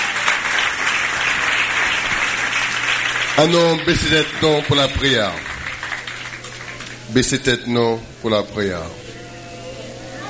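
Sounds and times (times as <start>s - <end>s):
congregation applauding during a church service: 0.0s - 7.5s
speech: 3.4s - 5.5s, 7.1s - 9.0s.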